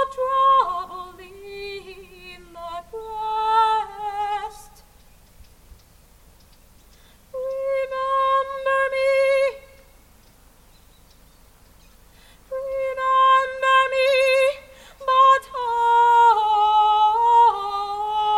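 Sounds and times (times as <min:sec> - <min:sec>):
opera in an ancient theatre: 0:00.0 - 0:04.9, 0:07.3 - 0:09.8, 0:12.5 - 0:18.3.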